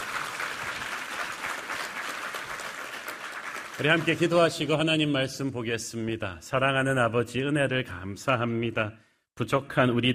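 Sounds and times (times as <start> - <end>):
audience applause: 0.0 - 4.9
speech: 3.8 - 10.1.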